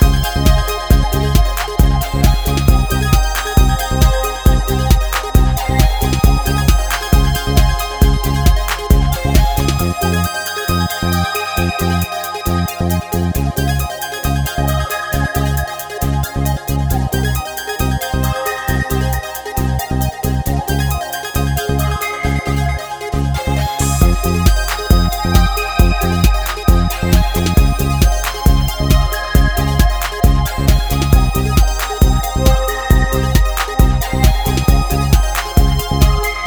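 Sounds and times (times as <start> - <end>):
Juno106 synthesizer: 0.0 - 36.4.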